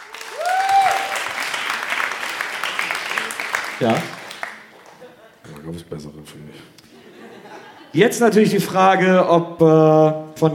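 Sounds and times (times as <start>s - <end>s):
audience applause: 0.0s - 5.3s
speech: 3.8s - 4.2s, 5.7s - 6.8s, 7.9s - 10.5s
laughter: 4.6s - 5.6s, 6.8s - 8.1s.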